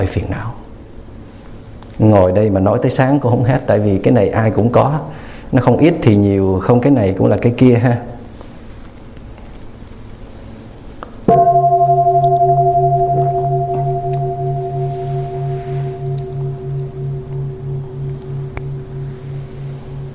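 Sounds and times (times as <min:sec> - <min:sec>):
speech: 0:00.0 - 0:00.6, 0:02.0 - 0:08.1
deep temple bell struck: 0:11.3 - 0:20.1.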